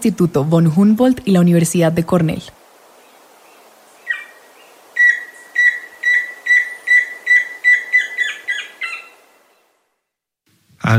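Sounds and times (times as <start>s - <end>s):
speech: 0.0s - 2.6s
tororo and chusquero bird song: 4.0s - 9.4s.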